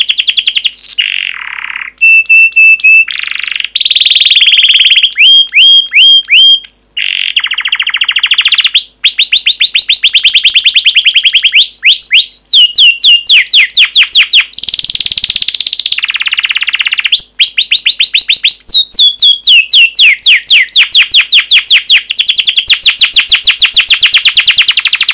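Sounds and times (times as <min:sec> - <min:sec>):
Canary song with whistled notes and rattling trill: 0:00.0 - 0:25.1.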